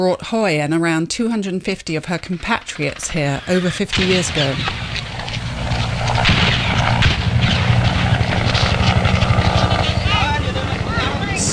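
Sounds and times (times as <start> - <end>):
speech: 0.0 - 5.0
American helicopter on the embassy roof preparing to lift off: 1.7 - 11.5.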